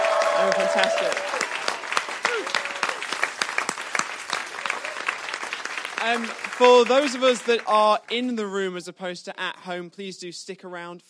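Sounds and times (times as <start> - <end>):
audience applause: 0.0 - 8.4
speech: 0.4 - 1.4, 6.0 - 11.0.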